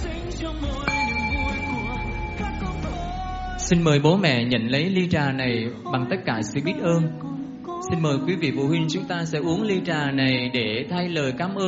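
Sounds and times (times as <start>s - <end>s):
bell rung for the tea offering: 0.7s - 4.0s
speech: 3.7s - 11.6s.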